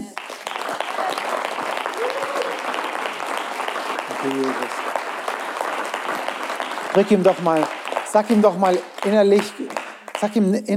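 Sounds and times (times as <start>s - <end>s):
audience applause: 0.0s - 10.4s
speech: 4.2s - 4.8s, 6.9s - 10.7s.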